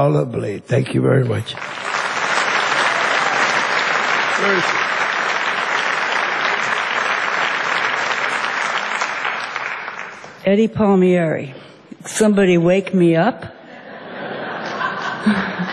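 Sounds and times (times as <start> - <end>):
speech: 0.0 - 1.9, 4.4 - 4.8, 10.4 - 13.6
warm audience applause: 1.5 - 10.4
laughter: 13.7 - 15.7.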